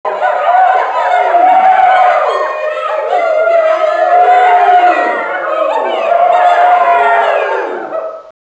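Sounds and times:
crowd: 0.1s - 8.3s.

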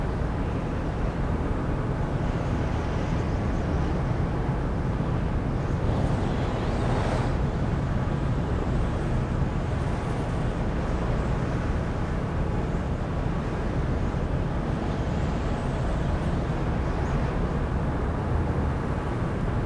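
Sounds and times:
warehouse district ambience: 0.1s - 19.6s.

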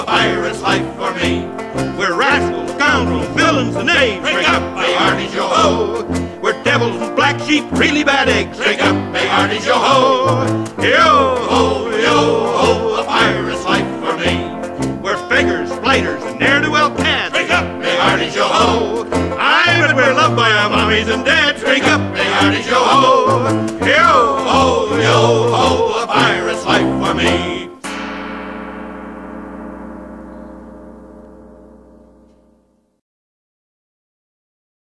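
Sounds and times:
music with vocals: 0.0s - 27.9s.

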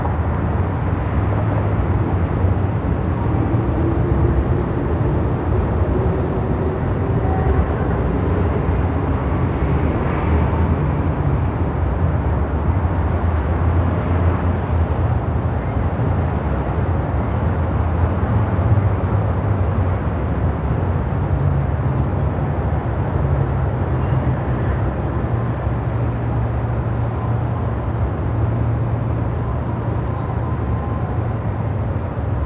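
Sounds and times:
elevated city ambience noise: 0.0s - 32.4s.

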